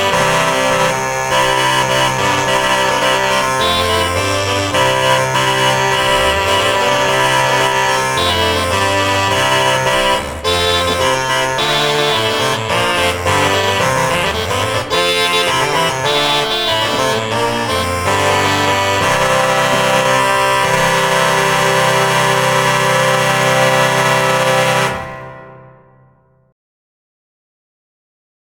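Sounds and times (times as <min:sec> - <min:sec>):
portative organ playing an intrada: 0:00.0 - 0:26.1.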